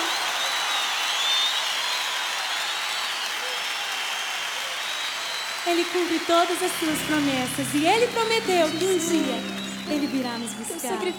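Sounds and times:
audience applauding: 0.0s - 11.1s
speech: 5.7s - 11.1s.

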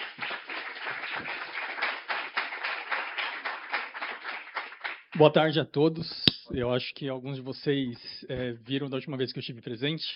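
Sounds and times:
crowd applauding: 0.0s - 5.2s
speech: 5.2s - 10.1s.

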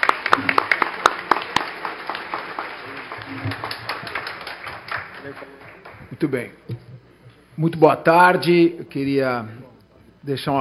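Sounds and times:
applause for a speaker: 0.0s - 6.2s
speech: 6.2s - 6.7s, 7.6s - 9.6s, 10.2s - 10.5s.

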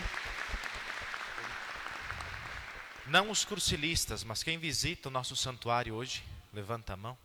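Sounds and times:
local community clapping at the Santuário da Mãe in Marcelino Ramos: 0.0s - 3.9s
speech: 3.1s - 7.2s.

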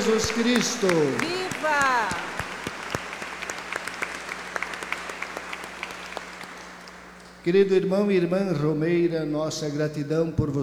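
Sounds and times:
applause for Our Lady of La Salette at a pilgrims' night gathering: 0.0s - 7.4s
speech: 0.1s - 2.3s, 7.4s - 10.6s.

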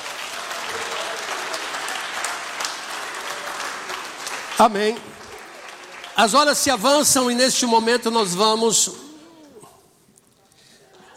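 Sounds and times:
applause: 0.0s - 7.6s
speech: 4.6s - 5.2s, 6.2s - 9.0s.

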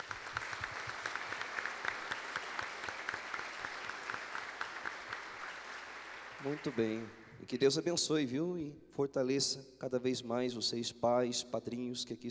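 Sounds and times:
audience applauding: 0.0s - 7.4s
speech: 6.4s - 12.2s.

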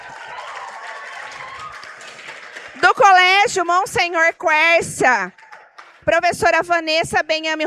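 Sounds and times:
audience applauding a teacher at a school ceremony: 0.0s - 3.9s, 5.2s - 6.4s
speech: 3.0s - 5.4s, 6.1s - 7.6s.

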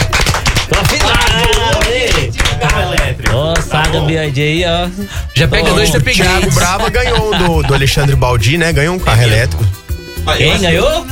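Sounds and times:
round of applause: 0.0s - 4.2s
laughter: 0.6s - 9.5s
speech: 3.9s - 11.0s.

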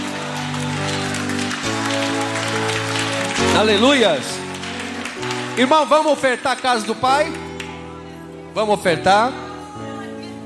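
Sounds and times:
audience applauding: 0.0s - 8.1s
speech: 3.6s - 4.4s, 5.6s - 7.4s, 8.5s - 9.4s.

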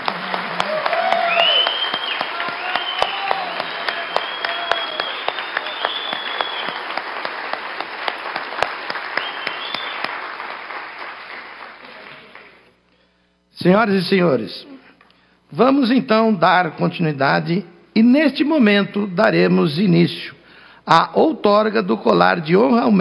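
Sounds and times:
audience applause: 0.0s - 12.7s
speech: 13.6s - 14.7s, 15.5s - 23.0s.

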